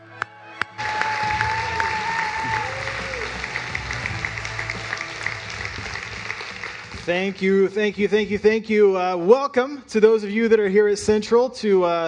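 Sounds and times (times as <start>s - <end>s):
audience applause in a church: 0.2s - 7.8s
speech: 7.1s - 12.0s.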